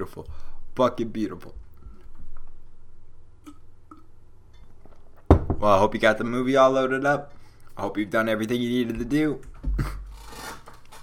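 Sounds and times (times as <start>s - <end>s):
speech: 0.0s - 1.6s, 5.6s - 9.9s
squeaky chair creaking: 10.0s - 11.0s.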